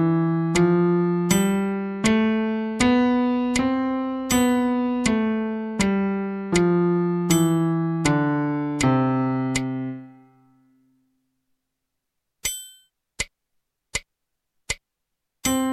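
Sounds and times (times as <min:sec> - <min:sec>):
C major scale: 0:00.0 - 0:10.7.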